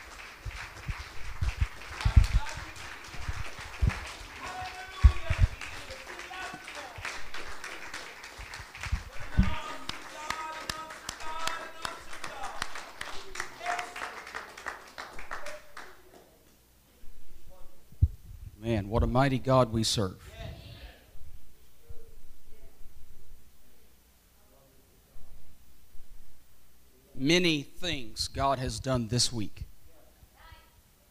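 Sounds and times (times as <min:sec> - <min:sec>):
audience applauding: 0:00.0 - 0:16.3
speech: 0:18.9 - 0:20.3, 0:28.4 - 0:29.7.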